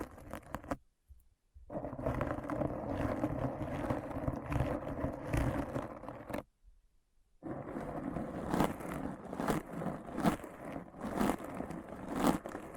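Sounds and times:
crunchy scratching: 1.8 - 6.4, 7.5 - 12.7.

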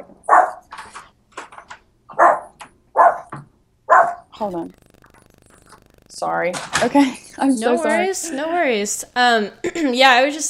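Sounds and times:
dog barking: 0.2 - 0.7, 2.1 - 3.3, 3.9 - 4.3
speech: 4.4 - 4.8, 6.2 - 10.4.

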